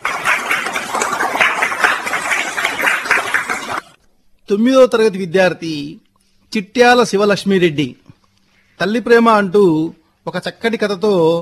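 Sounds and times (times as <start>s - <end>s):
audience clapping for a seventh-grade student's recitation at a school event: 0.0s - 4.0s
speech: 4.5s - 8.0s, 8.8s - 11.4s.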